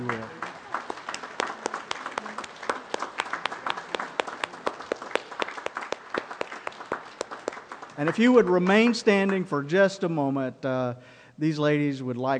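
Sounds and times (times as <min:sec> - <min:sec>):
audience applause: 0:00.0 - 0:09.4
speech: 0:08.0 - 0:12.3.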